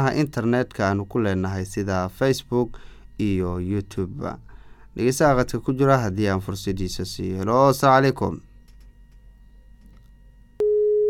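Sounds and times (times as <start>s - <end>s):
speech: 0.0s - 8.5s
low hum: 0.0s - 11.0s
telephone busy signal after a radio caller's line drops: 10.6s - 11.0s.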